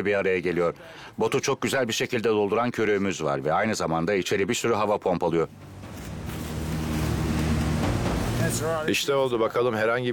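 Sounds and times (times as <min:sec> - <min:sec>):
speech: 0:00.0 - 0:05.9, 0:08.5 - 0:10.1
river flowing: 0:05.5 - 0:09.1.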